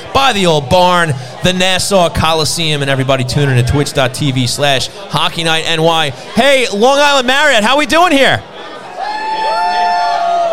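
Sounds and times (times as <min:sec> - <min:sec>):
speech: 0:00.2 - 0:08.5
live crowd cheering and whooping: 0:08.6 - 0:10.5.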